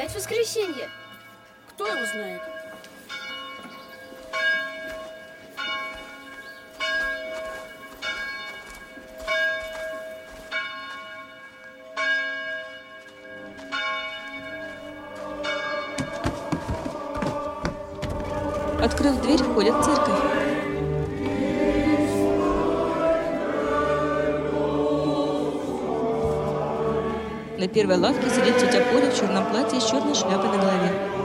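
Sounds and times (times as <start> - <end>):
church bells tolling: 0.0 - 31.2
speech: 0.2 - 1.1, 1.8 - 2.6, 18.8 - 20.5, 27.6 - 31.2.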